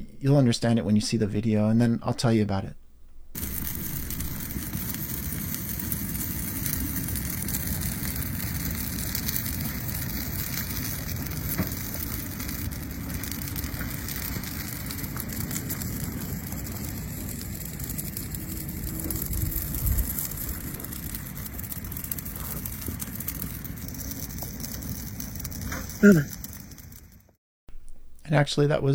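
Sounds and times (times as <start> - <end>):
bonfire crackling outdoors in snow: 0.0 - 28.9
speech: 0.2 - 2.8, 26.0 - 26.4, 28.3 - 28.9
person calling out: 26.0 - 26.3.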